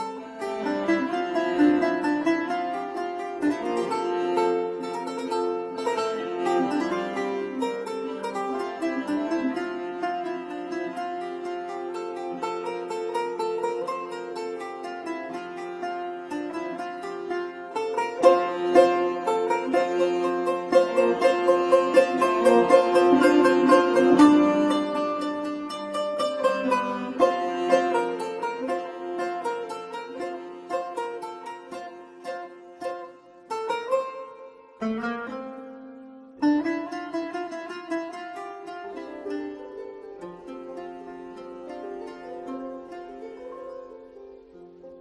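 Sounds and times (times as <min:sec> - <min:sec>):
lute: 0:00.0 - 0:44.9
vielle: 0:00.0 - 0:44.9.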